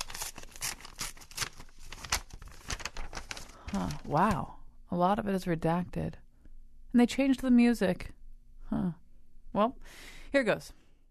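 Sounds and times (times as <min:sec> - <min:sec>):
sealed envelope being torn open: 0:00.0 - 0:04.3
speech: 0:03.7 - 0:06.2, 0:06.9 - 0:10.8.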